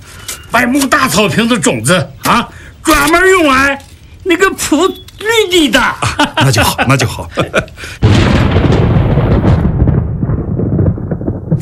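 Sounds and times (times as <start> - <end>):
speech: 0.5 - 8.0
laughter: 6.0 - 7.9
thunder before rain: 8.0 - 11.6.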